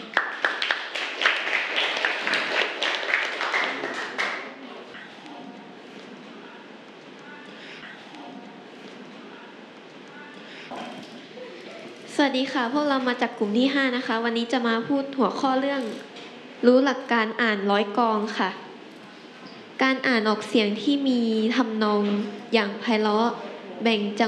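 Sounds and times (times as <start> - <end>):
audience applause for group representative: 0.0 - 4.6
speech: 12.2 - 18.6, 19.8 - 24.2.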